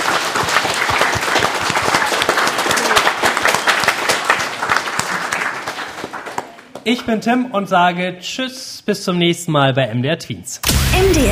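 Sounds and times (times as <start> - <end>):
audience applause: 0.0 - 6.8
speech: 6.8 - 11.3.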